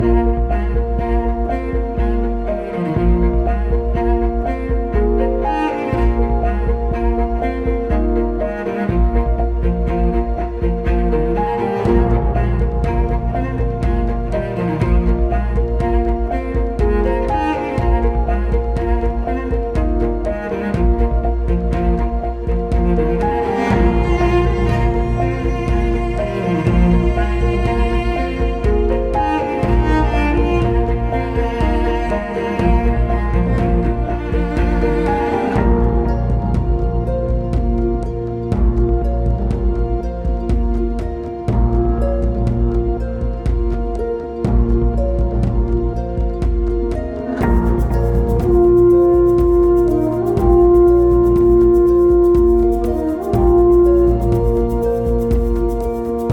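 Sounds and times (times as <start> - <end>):
autumn day ambient music: 0.0 - 56.3.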